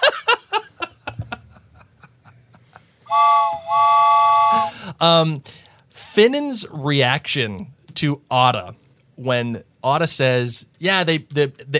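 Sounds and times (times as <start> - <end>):
chuckling and laughter: 0.0 - 2.9
voice imitating train whistle: 3.1 - 4.8
speech: 5.0 - 5.6, 6.2 - 11.7.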